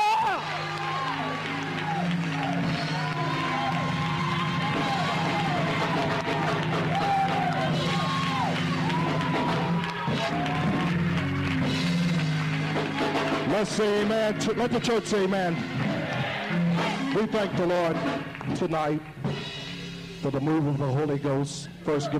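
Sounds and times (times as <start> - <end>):
audience hollering: 0.0 - 11.7, 15.8 - 17.5
hand clapping: 0.3 - 15.2, 17.2 - 19.5
speech: 13.7 - 15.7, 17.2 - 19.2, 20.2 - 22.1.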